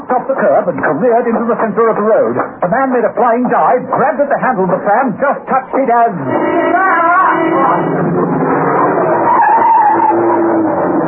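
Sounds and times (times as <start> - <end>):
speech: 0.1 - 8.3
van skidding on a wet road while swerving round a corner: 6.2 - 11.0.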